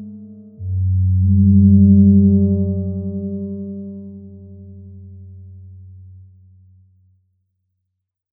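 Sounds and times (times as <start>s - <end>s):
ambient music: 0.0s - 5.8s.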